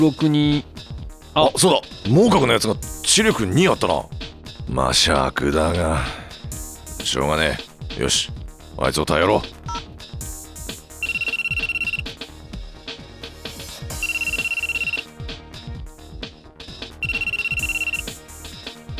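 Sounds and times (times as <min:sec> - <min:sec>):
speech: 0:00.0 - 0:06.2, 0:07.0 - 0:09.6
music: 0:00.0 - 0:18.9
telephone ringing unanswered during a late-night call: 0:09.7 - 0:09.9, 0:11.0 - 0:12.1, 0:14.0 - 0:15.0, 0:17.0 - 0:18.2.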